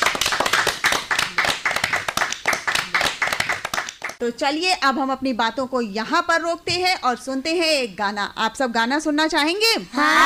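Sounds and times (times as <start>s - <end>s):
audience clapping: 0.0s - 4.2s
speech: 4.2s - 10.2s.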